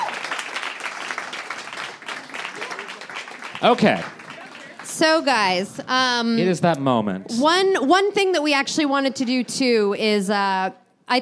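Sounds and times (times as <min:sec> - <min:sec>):
audience applause: 0:00.0 - 0:05.5
speech: 0:03.6 - 0:04.2, 0:05.0 - 0:11.2.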